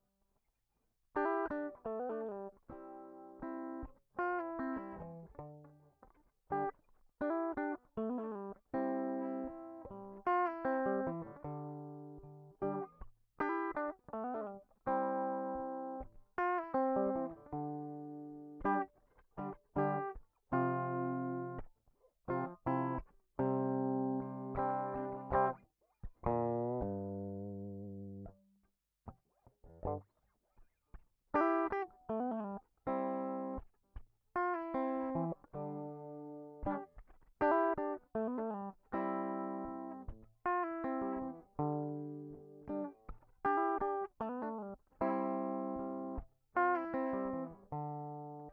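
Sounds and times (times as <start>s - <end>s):
guitar: 0.0s - 48.5s.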